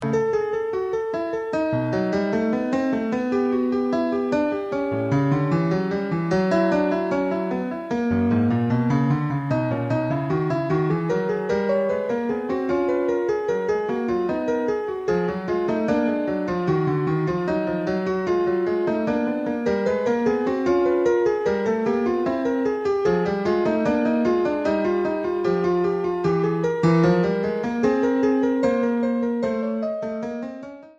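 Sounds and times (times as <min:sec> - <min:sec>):
baroque music: 0:00.0 - 0:30.9.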